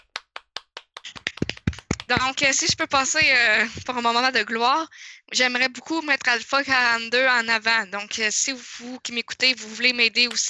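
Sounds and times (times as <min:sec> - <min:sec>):
hands clapping: 0:00.0 - 0:04.0, 0:10.2 - 0:10.4
speech: 0:02.1 - 0:10.4.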